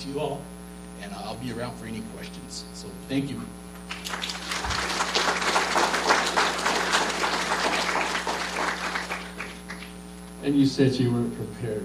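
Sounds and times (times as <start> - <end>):
speech: 0.0 - 5.0, 10.4 - 11.8
audience applause: 3.8 - 10.0.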